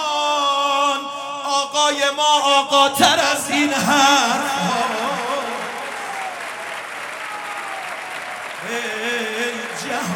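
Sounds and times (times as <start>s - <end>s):
person singing or chanting: 0.0s - 6.2s, 8.6s - 10.1s
speech: 1.6s - 5.1s
people clapping: 4.1s - 10.1s.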